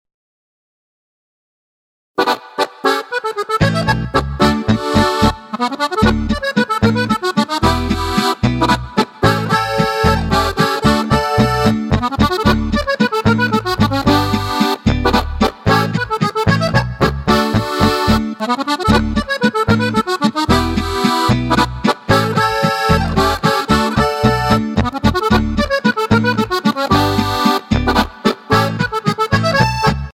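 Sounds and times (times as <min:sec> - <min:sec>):
accordion: 0:02.2 - 0:30.1.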